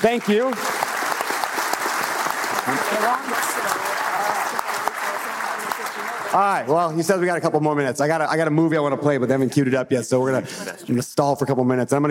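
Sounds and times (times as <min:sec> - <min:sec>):
speech: 0:00.0 - 0:00.8, 0:02.6 - 0:04.7, 0:06.3 - 0:12.0
audience round of applause: 0:00.0 - 0:06.9.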